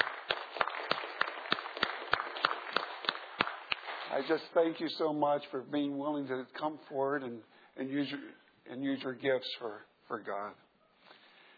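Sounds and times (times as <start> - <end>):
church audience clapping: 0.0 - 4.4
speech: 4.1 - 10.7.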